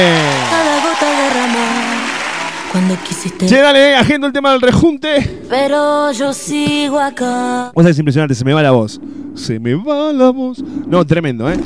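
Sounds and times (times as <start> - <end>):
applause: 0.0 - 3.8
speech: 2.8 - 11.6.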